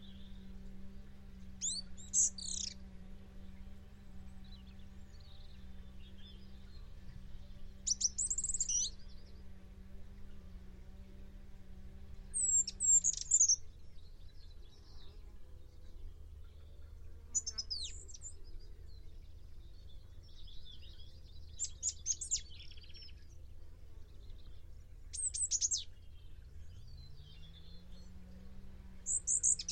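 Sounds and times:
bird calling with sharp high chirps: 0.0s - 9.5s, 12.2s - 29.7s
constant low hum: 0.0s - 29.7s.

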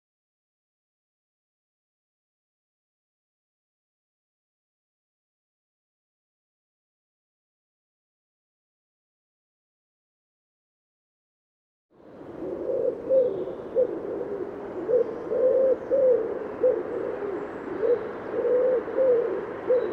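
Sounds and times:
bird cooing in low soft hooting notes: 12.0s - 19.9s.

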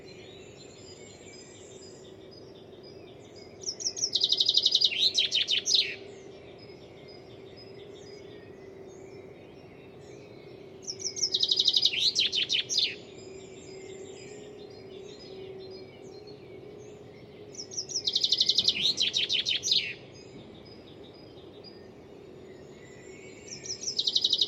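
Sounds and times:
bird song with fast bright trill of high chirps and squeaks: 3.7s - 6.0s, 10.9s - 13.1s, 17.6s - 20.0s, 23.3s - 24.4s.

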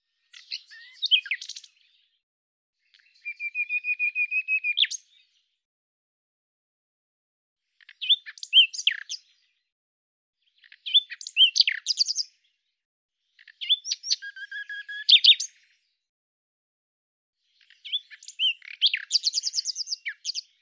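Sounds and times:
common nightingale song: 0.0s - 2.2s, 2.8s - 5.5s, 7.8s - 9.7s, 10.4s - 12.6s, 13.3s - 15.8s, 17.5s - 20.5s.

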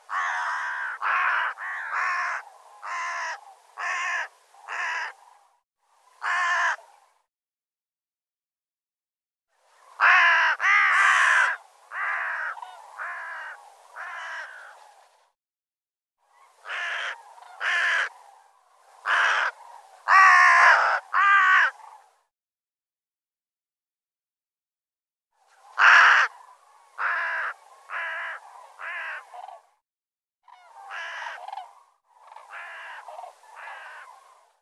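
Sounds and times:
bird calling with hoarse caws: 0.1s - 5.2s, 6.2s - 6.8s, 9.9s - 14.9s, 16.4s - 18.3s, 19.0s - 22.1s, 25.8s - 29.6s, 30.5s - 34.5s.

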